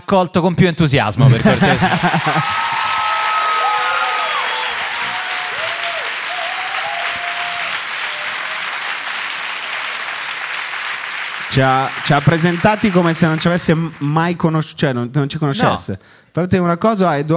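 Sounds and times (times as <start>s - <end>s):
speech: 0.1s - 3.0s, 11.6s - 17.3s
laughter: 1.2s - 3.3s
audience applause: 1.5s - 14.4s.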